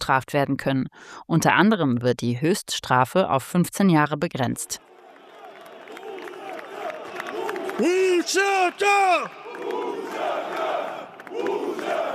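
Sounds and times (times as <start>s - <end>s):
speech: 0.1s - 4.9s, 7.8s - 10.5s
hundreds of supporters cheering outside parliament: 4.8s - 12.1s.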